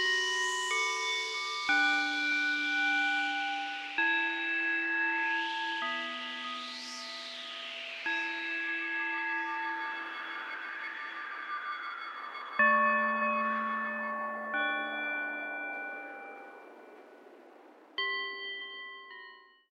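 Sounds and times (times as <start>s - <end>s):
meditation soundscape in the snow: 0.0s - 19.3s.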